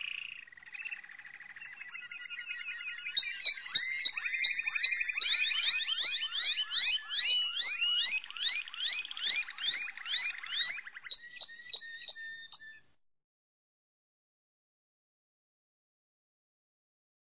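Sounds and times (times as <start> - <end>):
Malinois canary song: 0.0 - 12.9.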